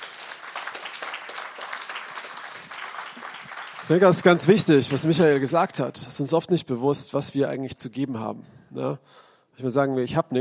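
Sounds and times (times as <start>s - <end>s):
audience applause: 0.0s - 6.0s
speech: 3.9s - 10.3s.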